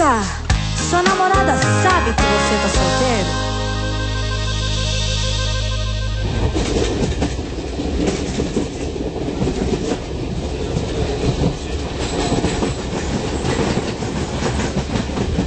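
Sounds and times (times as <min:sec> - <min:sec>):
speech: 0:00.2 - 0:03.5
sustained droning tone: 0:03.3 - 0:07.6
train running on rails: 0:06.6 - 0:15.4.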